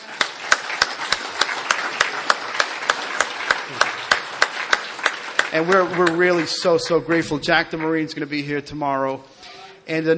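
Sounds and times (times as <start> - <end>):
audience applause: 0.0 - 8.0
speech: 5.5 - 9.3, 9.9 - 10.1.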